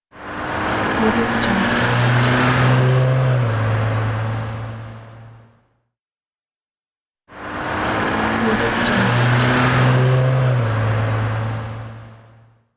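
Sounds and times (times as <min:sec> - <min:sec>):
car passing by: 0:00.2 - 0:05.2, 0:07.3 - 0:12.4.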